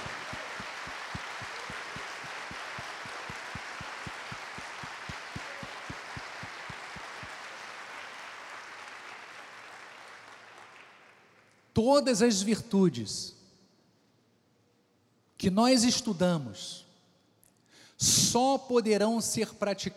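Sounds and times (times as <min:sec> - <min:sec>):
audience applauding: 0:00.0 - 0:11.5
speech: 0:11.8 - 0:13.4, 0:15.4 - 0:16.8, 0:18.3 - 0:19.9.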